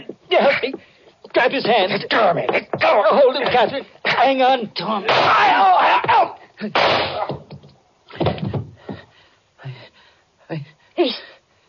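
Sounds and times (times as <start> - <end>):
speech: 0.4 - 7.3
person shouting: 5.0 - 6.4
gunshot in a radio drama: 6.8 - 7.4.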